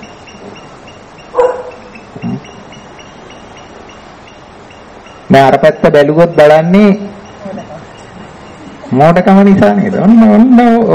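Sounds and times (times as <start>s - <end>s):
dog barking outside: 1.3s - 1.9s
speech: 5.3s - 7.1s, 8.9s - 10.9s.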